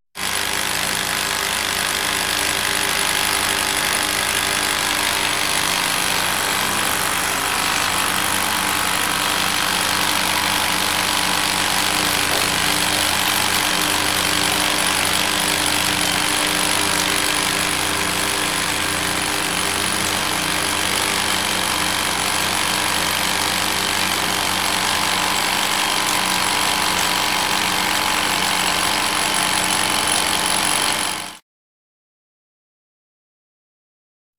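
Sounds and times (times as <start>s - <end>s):
drill: 0.1s - 31.4s.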